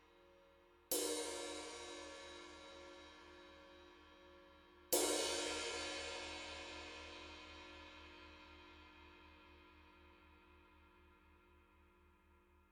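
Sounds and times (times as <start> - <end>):
20-inch ride cymbal played with hickory sticks: 0.9 - 9.6.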